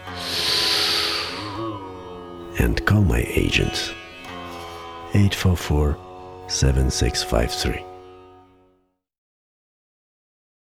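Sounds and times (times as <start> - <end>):
deep inhalation during yoga breathing: 0.0 - 2.1
speech: 2.6 - 4.0, 5.1 - 7.9.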